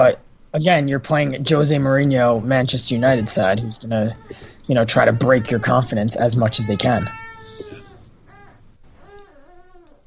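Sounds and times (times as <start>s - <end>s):
speech: 0.0s - 7.2s
baby whining: 2.2s - 10.0s.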